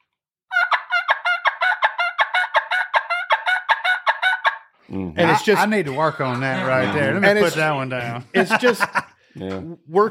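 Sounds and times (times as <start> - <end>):
imitated turkey hen call with raspy yelping notes: 0.5 - 5.4
speech: 4.9 - 10.0
laughter: 5.2 - 9.7.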